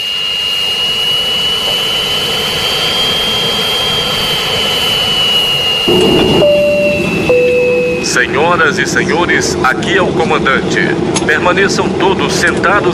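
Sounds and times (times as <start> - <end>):
jet airplane engine roaring: 0.1 - 9.6
speech: 8.2 - 12.9.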